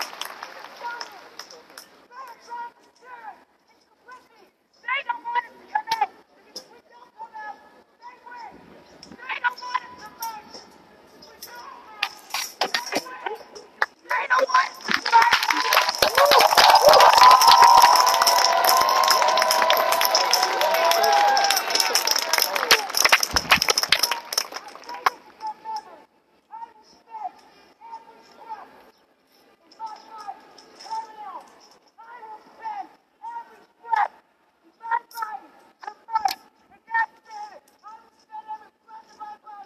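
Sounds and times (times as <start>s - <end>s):
protest crowd cheering in Niagara Square: 0.0s - 1.5s, 14.4s - 25.2s
protest speech and shouts in Niagara Square: 0.6s - 8.6s, 9.2s - 23.0s, 24.0s - 28.8s, 29.7s - 39.6s.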